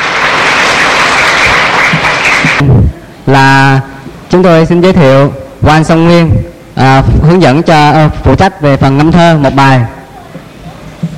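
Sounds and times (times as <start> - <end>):
crowd of Buddhist followers applauding: 0.0 - 2.7
speech: 2.6 - 10.0.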